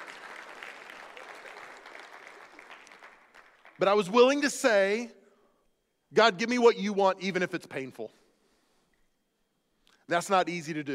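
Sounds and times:
audience clapping: 0.0s - 4.1s
speech: 3.8s - 5.2s, 6.1s - 8.2s, 10.1s - 10.9s.

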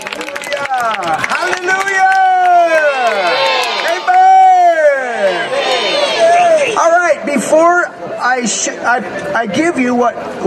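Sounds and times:
audience clapping: 0.0s - 4.3s
many voices cheering and shouting: 0.0s - 7.5s
speech: 0.8s - 2.1s, 7.5s - 10.4s.

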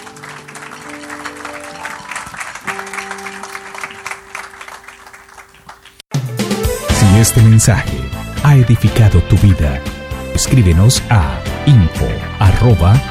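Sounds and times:
applause: 0.0s - 6.0s
speech: 7.2s - 13.0s.

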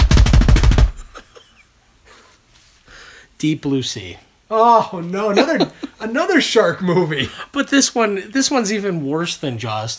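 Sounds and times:
drum roll: 0.0s - 1.2s
speech: 3.4s - 9.9s.

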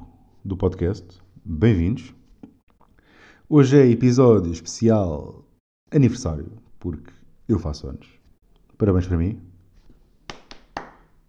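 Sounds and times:
speech: 0.5s - 2.2s, 3.5s - 8.2s, 8.8s - 9.5s
hand clapping: 10.2s - 11.2s.

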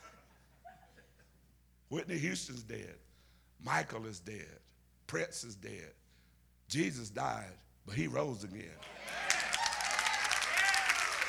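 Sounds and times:
laughter: 0.0s - 1.3s
speech: 1.9s - 6.0s, 6.7s - 9.2s
audience clapping: 8.8s - 11.2s
faint whoops or voices: 8.9s - 11.2s.

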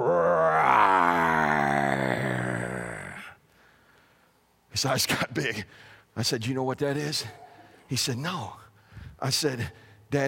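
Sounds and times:
man's voice imitating a lion's roar: 0.0s - 3.3s, 6.9s - 7.9s
speech: 4.8s - 8.6s, 9.2s - 10.2s.

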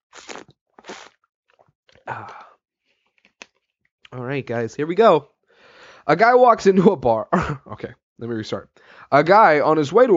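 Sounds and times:
person drinking water: 0.1s - 2.6s
speech: 2.1s - 2.4s, 4.1s - 5.3s, 6.1s - 10.1s.

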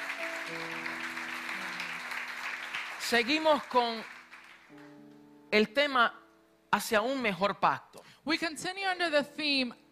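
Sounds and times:
audience clapping: 0.0s - 5.1s
speech: 3.1s - 4.1s, 5.5s - 9.8s.

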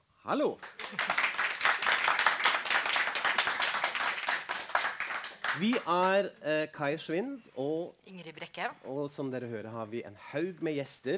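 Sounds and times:
speech: 0.2s - 1.2s, 5.6s - 11.1s
live audience applauding: 0.6s - 6.2s.

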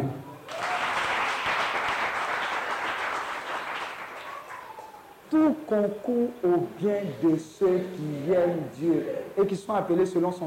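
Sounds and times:
audience applauding: 0.5s - 5.2s
speech: 5.3s - 10.4s.

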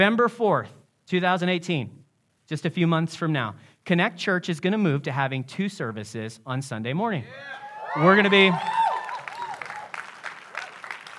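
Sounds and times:
speech: 0.0s - 8.9s
audience applause: 7.6s - 11.1s.

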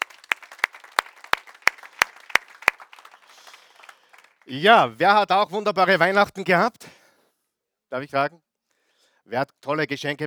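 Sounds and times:
audience applause: 0.0s - 5.0s
speech: 4.5s - 7.0s, 7.9s - 8.4s, 9.3s - 10.2s.

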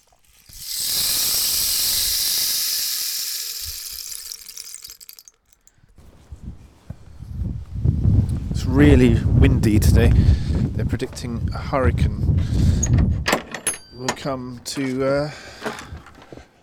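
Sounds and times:
rain stick being tipped: 0.0s - 5.8s
speech: 8.8s - 13.3s, 14.0s - 15.8s.

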